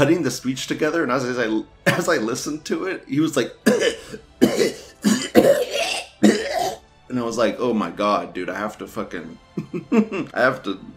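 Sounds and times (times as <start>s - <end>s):
speech: 0.0s - 4.7s, 7.2s - 10.9s
man coughing during a speech on a trilateral agreement: 3.6s - 6.8s.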